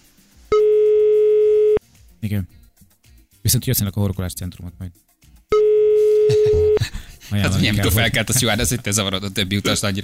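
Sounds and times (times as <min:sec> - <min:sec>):
telephone ringing tone calling a listener: 0:00.5 - 0:01.8, 0:05.6 - 0:06.8
speech: 0:02.2 - 0:02.6, 0:03.5 - 0:05.1, 0:06.4 - 0:10.0
laughter: 0:06.3 - 0:08.7.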